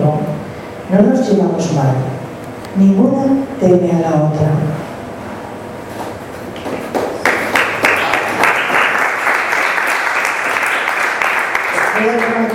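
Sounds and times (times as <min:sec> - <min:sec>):
speech: 0:00.9 - 0:02.2, 0:02.8 - 0:04.8
crowd applauding at a poetry recital: 0:07.1 - 0:12.5.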